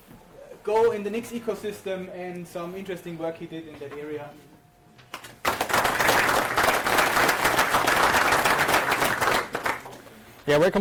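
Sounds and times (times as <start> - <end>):
speech: 0.7 - 4.5, 10.5 - 10.7
audience applause for a conference speaker: 5.4 - 10.0.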